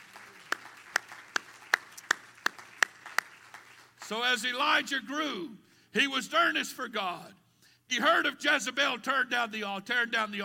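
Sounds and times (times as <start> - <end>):
audience clapping hands: 0.0 - 4.2
speech: 4.1 - 10.4.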